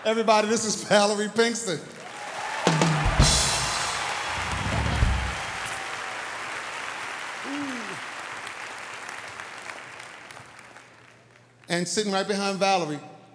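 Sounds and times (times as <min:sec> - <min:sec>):
speech: 0:00.0 - 0:02.0, 0:11.8 - 0:13.1
crowd audience clapping loudly: 0:01.9 - 0:11.8.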